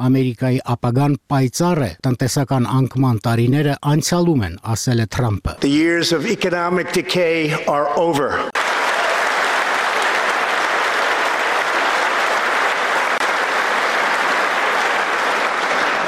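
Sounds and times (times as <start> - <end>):
speech: 0.0 - 8.6
Republican lawmakers giving Trump a standing ovation: 8.6 - 16.0.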